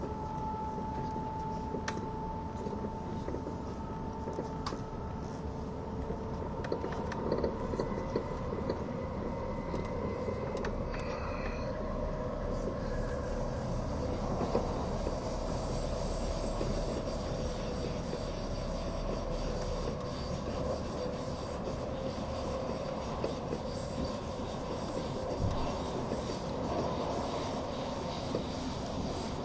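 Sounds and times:
train on the Gotthard route rumbling and rattling: 0.0s - 29.4s
brighter hiss: 12.5s - 29.4s.

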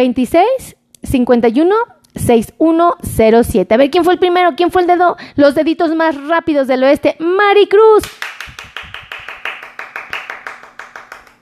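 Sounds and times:
speech: 0.0s - 8.3s
audience applause: 8.2s - 11.3s.

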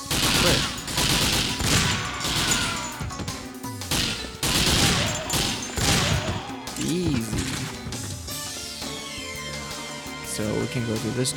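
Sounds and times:
video game .50 caliber gunfire: 0.0s - 7.9s
speech: 10.8s - 11.3s.

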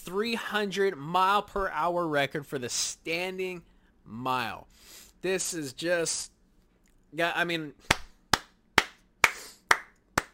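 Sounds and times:
speech: 0.1s - 6.3s, 7.1s - 8.0s
hand claps: 7.8s - 10.3s.

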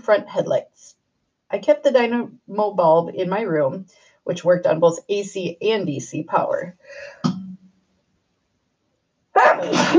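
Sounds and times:
speech: 0.0s - 7.4s, 9.6s - 9.9s
sneeze: 9.4s - 9.9s.

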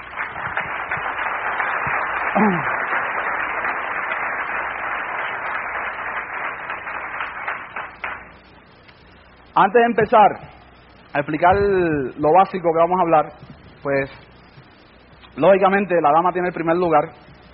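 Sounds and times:
applause: 0.0s - 8.4s
speech: 2.3s - 2.7s, 9.6s - 10.5s, 11.1s - 14.3s, 15.4s - 17.2s.

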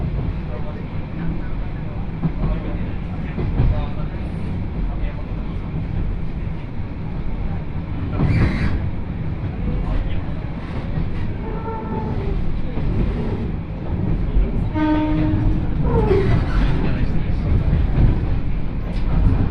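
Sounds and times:
Yodo Line train carriage running between Uwajima and Chikanaga: 0.0s - 19.4s
faint voices murmuring: 0.0s - 19.4s.

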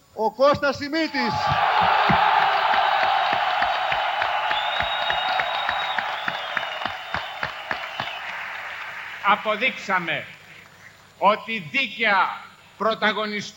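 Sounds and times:
speech: 0.2s - 2.2s, 9.3s - 10.4s, 11.2s - 13.5s
faint cheers: 1.0s - 10.3s
sustained applause from a large crowd in a parliament hall: 1.2s - 10.7s.

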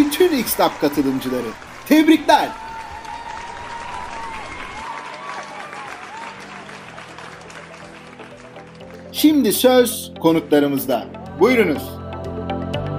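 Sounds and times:
audience applause for event participants: 0.0s - 9.6s
speech: 0.2s - 2.6s, 9.2s - 12.0s.

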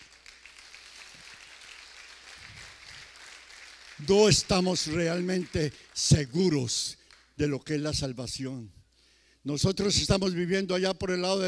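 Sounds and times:
audience applauding: 0.0s - 7.2s
speech: 4.0s - 8.8s, 9.4s - 11.4s.

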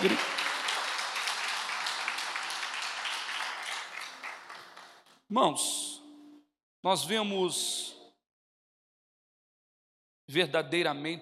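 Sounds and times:
audience clapping hands: 0.0s - 5.2s
speech: 5.3s - 5.9s, 6.8s - 8.0s, 10.3s - 11.2s.

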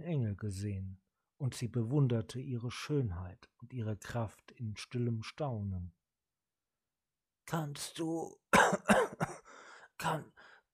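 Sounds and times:
speech: 0.0s - 6.0s, 7.5s - 9.4s, 10.0s - 10.7s
voice imitating weak, strained coughing: 8.5s - 9.5s.

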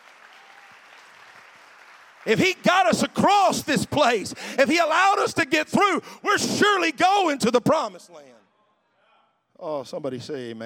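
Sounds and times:
audience clapping: 0.0s - 4.3s
speech: 2.2s - 8.4s, 9.6s - 10.6s.

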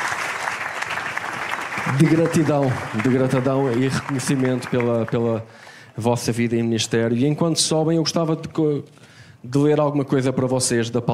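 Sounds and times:
church congregation applauding a pastor and a sister: 0.0s - 6.0s
speech: 1.9s - 11.1s.

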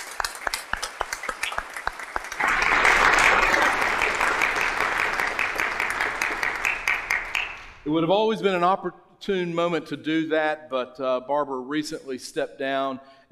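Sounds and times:
audience applause: 0.0s - 7.8s
speech: 7.9s - 13.3s.

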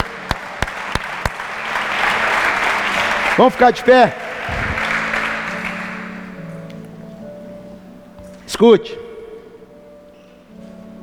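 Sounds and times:
audience applauding: 0.0s - 6.6s
speech: 3.4s - 4.6s, 8.6s - 9.0s.

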